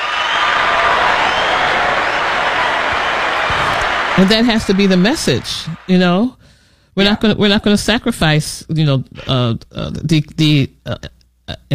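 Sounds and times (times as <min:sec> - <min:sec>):
hand claps: 0:00.0 - 0:05.9
speech: 0:04.2 - 0:06.4, 0:07.0 - 0:11.7.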